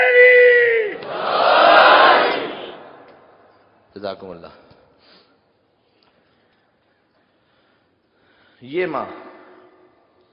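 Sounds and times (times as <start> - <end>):
crowd at a Shia religious gathering shouting a slogan in unison: 0.9 - 3.1
speech: 4.0 - 4.6, 8.6 - 9.3.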